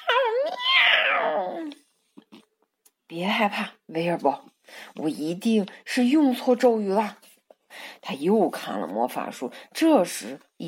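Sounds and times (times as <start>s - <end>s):
person imitating a cat meow: 0.0s - 1.8s
speech: 3.2s - 7.2s, 8.0s - 10.6s.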